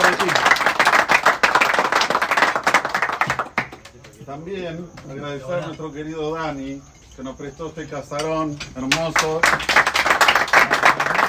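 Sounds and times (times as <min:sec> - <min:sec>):
crowd applauding: 0:00.0 - 0:04.2, 0:08.9 - 0:11.2
speech: 0:04.6 - 0:09.8.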